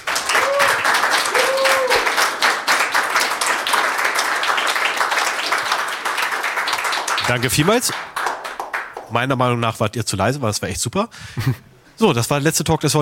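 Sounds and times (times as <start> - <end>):
audience applause: 0.0 - 9.1
speech: 7.3 - 8.1, 9.1 - 13.0.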